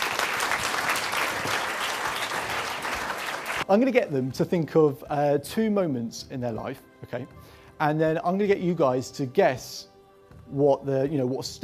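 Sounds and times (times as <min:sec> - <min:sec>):
audience round of applause: 0:00.0 - 0:03.6
speech: 0:03.7 - 0:09.9, 0:10.5 - 0:11.6.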